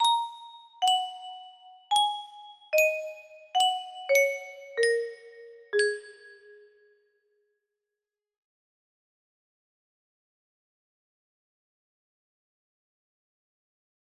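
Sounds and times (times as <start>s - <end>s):
quick simple music box melody: 0.0s - 6.8s.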